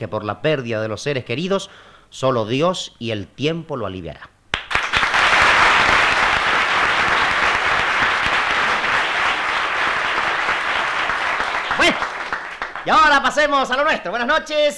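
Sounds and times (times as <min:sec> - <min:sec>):
speech: 0:00.0 - 0:04.3, 0:12.8 - 0:14.7
audience applause: 0:04.6 - 0:13.3.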